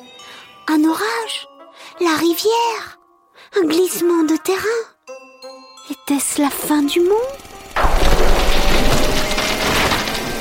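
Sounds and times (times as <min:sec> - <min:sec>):
speech: 0:00.7 - 0:04.9, 0:06.1 - 0:07.4
large pine tree cracking and falling: 0:07.8 - 0:10.3.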